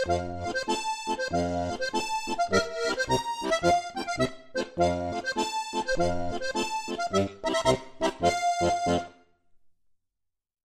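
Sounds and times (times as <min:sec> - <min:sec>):
march music: 0:00.0 - 0:09.1.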